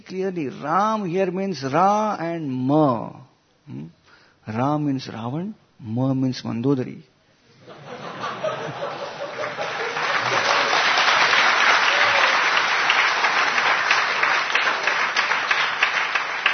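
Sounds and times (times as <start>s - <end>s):
speech: 0.1s - 7.1s
laughter: 7.6s - 13.9s
person clapping: 9.3s - 16.5s.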